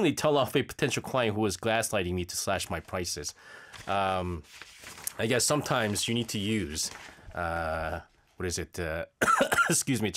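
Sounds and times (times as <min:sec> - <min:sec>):
speech: 0:00.0 - 0:10.1
person coughing and clearing throat from something stuck in the throat: 0:09.2 - 0:09.8.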